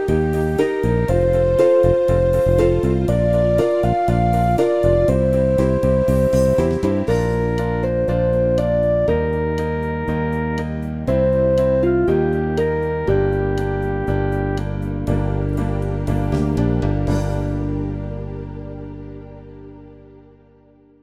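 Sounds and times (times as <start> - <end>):
arpeggiated ballad music: 0.0 - 21.0.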